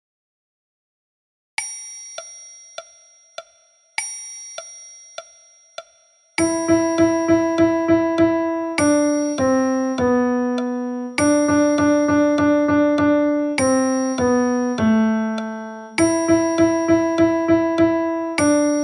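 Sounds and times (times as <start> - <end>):
piano music: 6.4 - 18.8.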